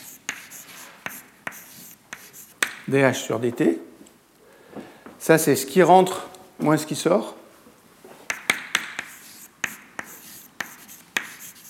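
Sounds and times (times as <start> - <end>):
writing strokes on a board during a lecture: 0.0 - 2.6, 8.3 - 11.6
speech: 2.9 - 3.9, 5.3 - 7.4.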